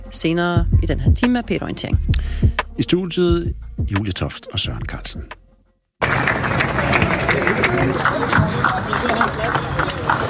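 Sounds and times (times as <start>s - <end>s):
speech: 0.1s - 5.4s, 7.4s - 9.7s
crowd applauding at outdoor farmers' demonstration: 6.0s - 10.2s.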